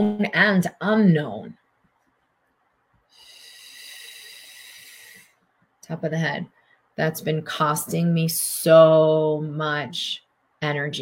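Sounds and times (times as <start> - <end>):
speech: 0.0 - 1.6, 5.9 - 10.9
long airy breath during a guided meditation: 3.1 - 5.4.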